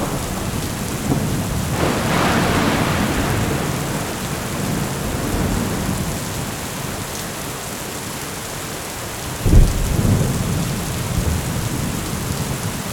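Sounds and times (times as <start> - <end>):
thunderstorm rain: 0.0 - 12.9.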